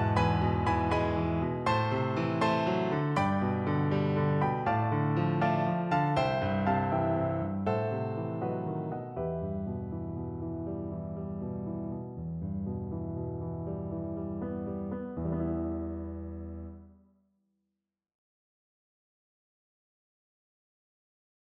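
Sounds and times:
piano piece: 0:00.0 - 0:16.9.

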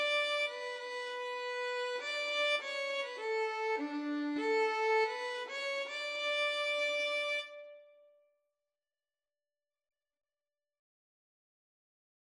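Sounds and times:
violin and viola duet playing an anthem: 0:00.0 - 0:07.8.

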